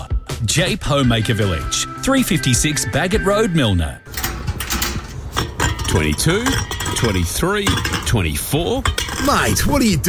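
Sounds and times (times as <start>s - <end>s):
speech: 0.4s - 4.2s, 5.9s - 10.0s
empty drink cans clinking together: 4.1s - 9.7s.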